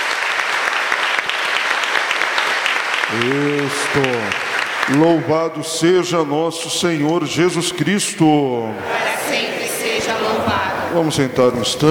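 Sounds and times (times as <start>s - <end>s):
audience applauding loudly: 0.0s - 6.4s
speech: 3.1s - 11.8s.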